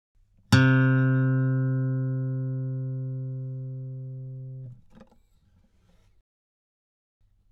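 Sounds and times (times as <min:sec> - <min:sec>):
steel-string guitar note C3 on A string: 0:00.5 - 0:04.8.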